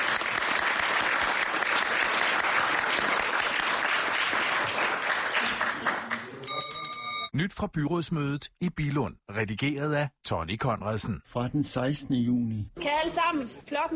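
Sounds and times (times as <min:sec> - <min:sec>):
applause at a municipal council meeting in Billund, Denmark, congratulating a couple on their wedding: 0:00.0 - 0:06.6
speech: 0:07.4 - 0:13.9.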